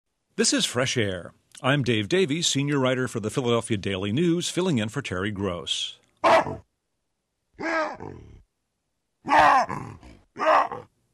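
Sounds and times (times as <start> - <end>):
speech: 0.4 - 6.7, 7.6 - 8.3
wild baboons screaming and grunting: 7.6 - 8.4, 9.2 - 10.9.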